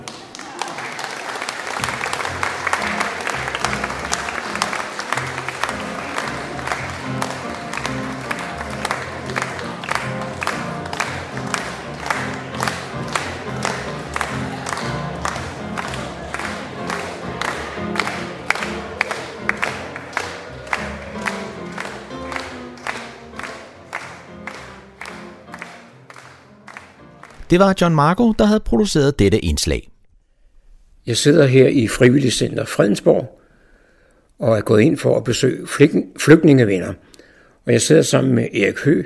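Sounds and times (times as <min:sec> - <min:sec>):
audience applause: 0:00.0 - 0:27.8
speech: 0:27.5 - 0:29.9, 0:31.1 - 0:33.4, 0:34.4 - 0:39.0.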